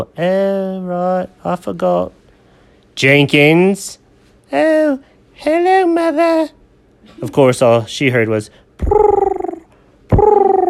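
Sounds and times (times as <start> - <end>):
speech: 0.0 - 2.2, 3.0 - 9.1
voice imitating a pigeon cooing: 8.8 - 10.6.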